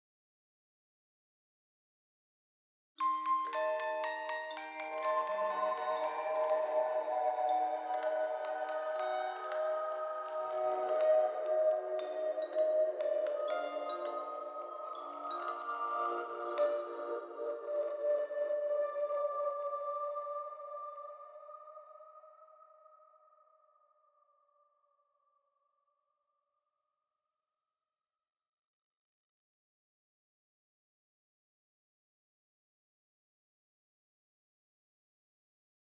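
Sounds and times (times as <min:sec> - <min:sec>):
music box: 0:03.0 - 0:20.7.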